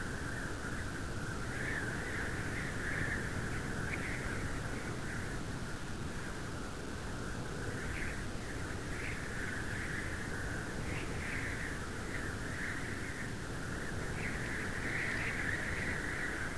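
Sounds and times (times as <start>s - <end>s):
wind: 0.0s - 16.5s.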